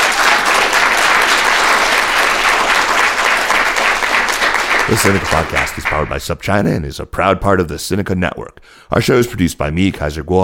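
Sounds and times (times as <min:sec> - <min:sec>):
audience round of applause: 0:00.0 - 0:06.3
speech: 0:04.9 - 0:10.4.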